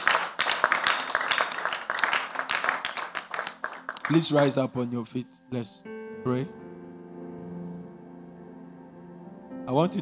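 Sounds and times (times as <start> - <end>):
audience clapping hands: 0.0 - 4.7
speech: 4.1 - 6.6, 9.7 - 10.0.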